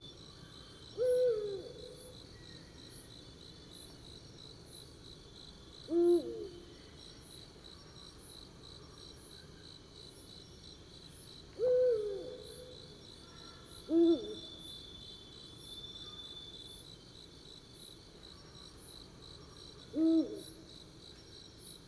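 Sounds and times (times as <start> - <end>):
Eurasian eagle-owl hooting: 1.0 - 2.0, 5.9 - 6.6, 11.6 - 12.7, 13.9 - 14.6, 19.9 - 20.6.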